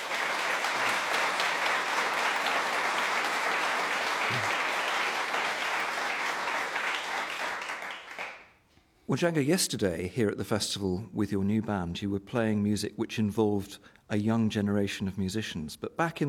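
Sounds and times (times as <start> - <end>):
audience applause welcoming a guest at the Cheltenham Jazz Festival: 0.0 - 8.5
speech: 9.1 - 16.2.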